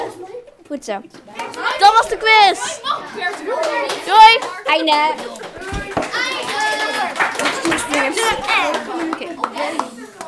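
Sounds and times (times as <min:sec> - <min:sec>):
speech: 0:00.7 - 0:05.8, 0:07.6 - 0:09.8
group clapping hands: 0:03.1 - 0:10.2.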